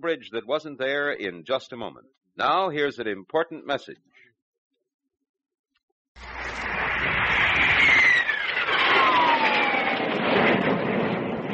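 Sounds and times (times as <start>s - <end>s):
speech: 0.0s - 4.2s
jet aircraft flying overhead: 6.2s - 11.5s.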